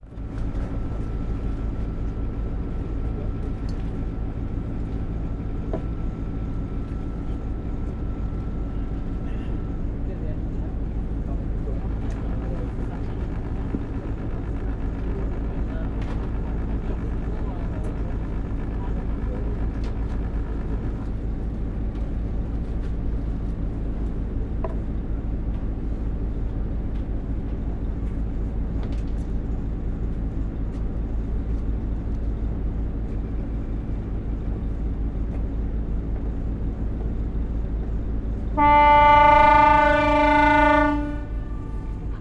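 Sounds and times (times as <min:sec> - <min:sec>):
boat engine: 0:00.0 - 0:42.1
boat horn: 0:38.6 - 0:42.1.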